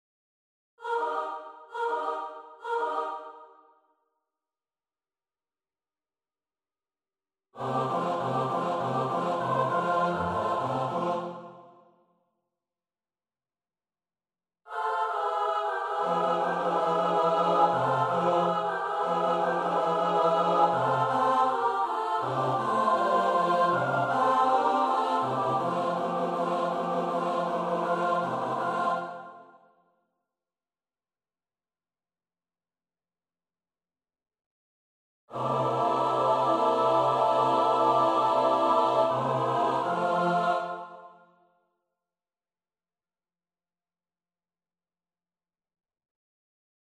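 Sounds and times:
SATB choir part practice: 0:00.8 - 0:03.6, 0:07.6 - 0:11.8, 0:14.7 - 0:29.6, 0:35.3 - 0:41.3.

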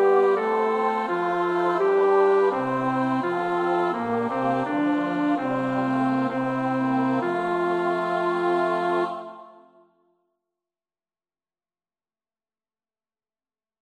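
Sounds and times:
bass choir part practice: 0:00.0 - 0:09.8.

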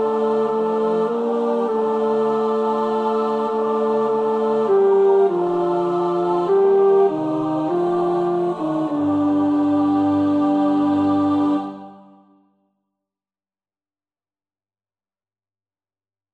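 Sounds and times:
tenor singing: 0:00.0 - 0:12.2.

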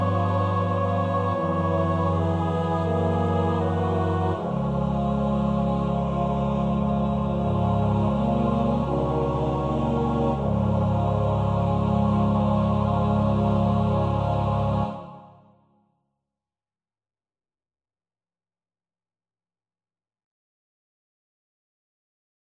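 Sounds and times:
soprano alto tenor bass voices: 0:00.0 - 0:15.4.

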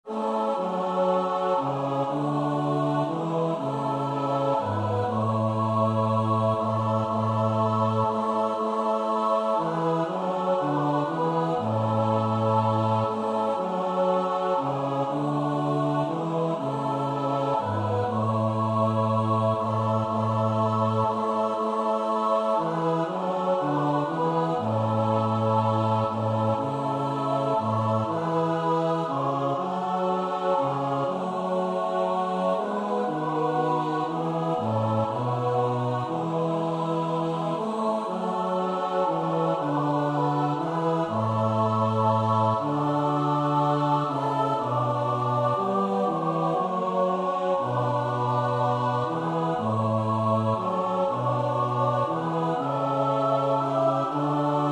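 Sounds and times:
SATB choir singing: 0:00.0 - 0:54.7.

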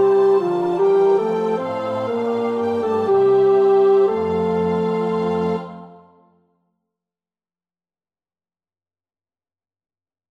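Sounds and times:
tenor practising a choir part: 0:00.1 - 0:06.2.

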